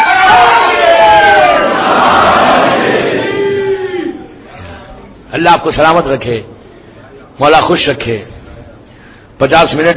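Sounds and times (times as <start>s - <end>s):
crowd chanting a religious slogan: 0.2s - 4.8s
speech: 5.7s - 6.5s, 7.4s - 8.4s, 9.4s - 9.9s.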